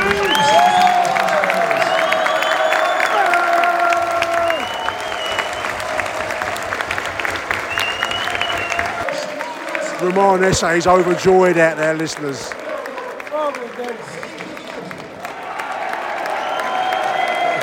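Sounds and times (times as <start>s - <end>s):
audience applause: 0.0s - 17.6s
speech: 10.2s - 12.6s, 13.6s - 14.2s.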